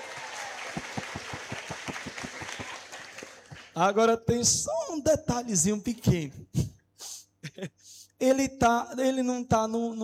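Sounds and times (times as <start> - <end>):
audience applause: 0.0 - 3.8
speech: 3.8 - 6.4, 7.6 - 10.0.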